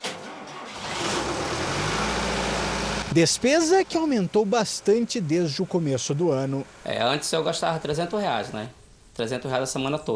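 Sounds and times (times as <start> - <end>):
diesel generator powering machines at a boat factory on an island: 0.7 - 8.8
speech: 3.1 - 10.1.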